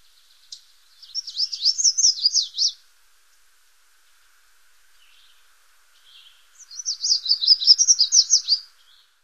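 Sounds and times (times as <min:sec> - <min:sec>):
Red-faced Warbler singing: 0:00.0 - 0:02.8, 0:05.0 - 0:09.2.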